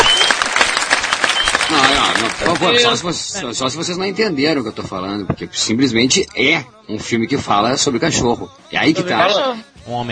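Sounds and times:
applause: 0.0 - 3.0
speech: 2.3 - 10.0.

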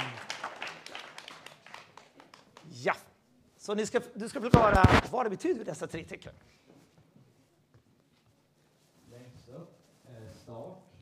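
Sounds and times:
small group clapping: 0.0 - 2.8
speech: 2.8 - 3.0, 3.7 - 6.7.

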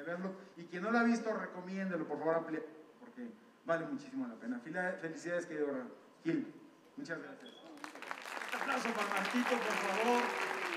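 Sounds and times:
speech: 0.0 - 7.7, 8.6 - 10.4
audience applause: 7.8 - 10.7.

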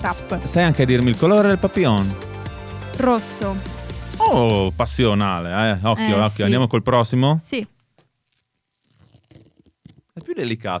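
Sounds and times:
speech: 0.0 - 2.3, 3.0 - 7.7, 10.2 - 10.7
mother unfastening a diaper's adhesive tabs: 8.0 - 10.2.

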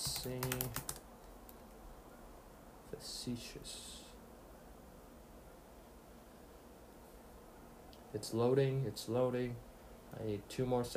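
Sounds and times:
typing on a computer keyboard: 0.0 - 1.6
speech: 0.2 - 0.9, 3.0 - 3.9, 8.1 - 10.9.

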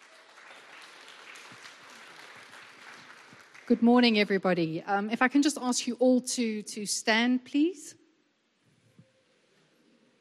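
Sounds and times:
audience applauding: 0.0 - 3.8
speech: 3.7 - 8.0.

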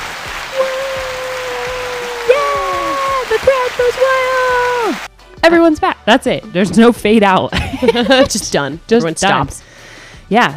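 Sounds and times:
applause sound effect: 0.0 - 5.1
speech: 3.4 - 9.7, 10.3 - 10.5
laughter: 7.5 - 8.6.

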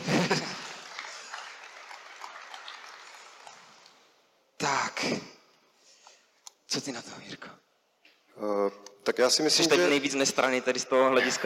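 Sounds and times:
audience applause: 0.0 - 4.2
speech: 6.8 - 7.7, 8.4 - 11.4.

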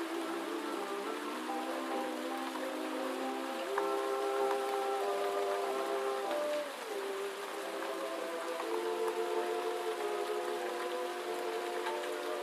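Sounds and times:
gentle night rain: 0.0 - 12.4
oldies playing in another room: 0.0 - 12.4.

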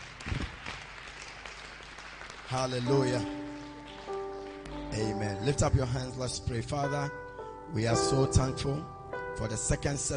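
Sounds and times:
audience clapping hands: 0.0 - 5.7
speech: 2.5 - 3.4, 5.0 - 10.1.

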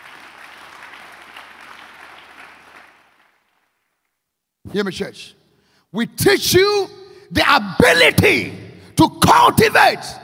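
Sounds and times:
audience clapping: 0.0 - 4.2
speech: 4.7 - 10.2.

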